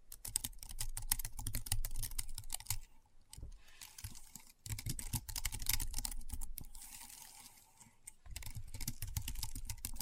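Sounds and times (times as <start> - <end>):
rapid keyboard typing: 0.0 - 2.9, 3.9 - 6.9, 8.2 - 10.0.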